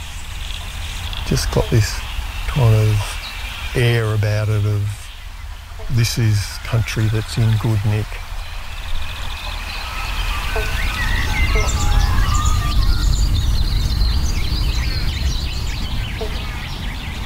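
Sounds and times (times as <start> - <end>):
banjo frogs calling: 0.0 - 17.2
speech: 1.3 - 5.0, 5.8 - 8.3.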